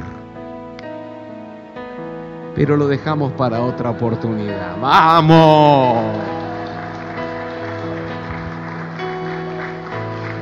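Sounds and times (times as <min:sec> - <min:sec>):
speech: 0:02.6 - 0:06.4
audience applause: 0:05.2 - 0:10.4.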